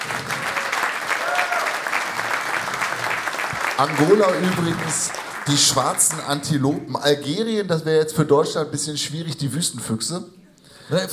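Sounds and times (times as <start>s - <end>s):
audience applause: 0.0s - 6.5s
speech: 3.8s - 11.1s.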